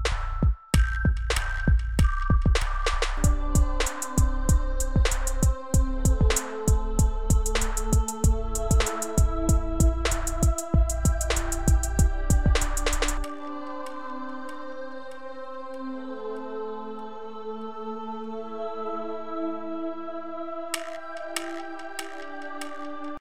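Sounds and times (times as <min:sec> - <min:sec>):
night music loop: 0:00.0 - 0:13.3.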